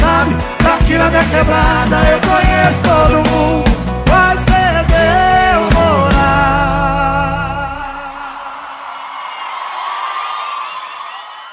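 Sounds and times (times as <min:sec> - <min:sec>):
sertanejo music: 0:00.0 - 0:08.6.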